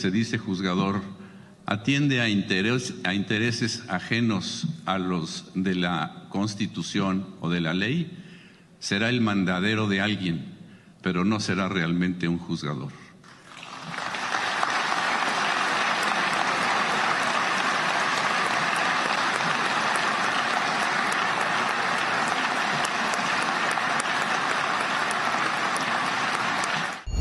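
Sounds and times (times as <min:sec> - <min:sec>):
speech: 0:00.0 - 0:08.2, 0:08.8 - 0:13.0
long applause: 0:13.3 - 0:27.1.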